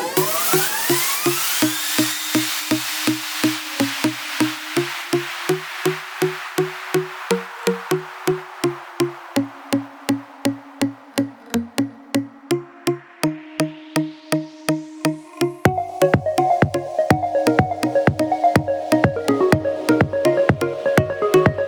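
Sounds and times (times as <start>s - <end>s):
instrumental music: 0.1s - 21.6s.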